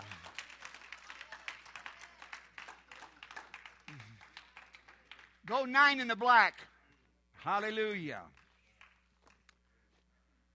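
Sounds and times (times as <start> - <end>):
audience clapping hands: 0.0 - 5.7, 7.6 - 9.6
speech: 5.5 - 6.7, 7.4 - 8.4.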